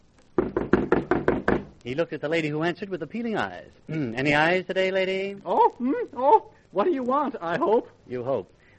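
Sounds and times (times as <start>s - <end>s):
pounding knock on a door: 0.4s - 1.7s
speech: 1.8s - 8.7s.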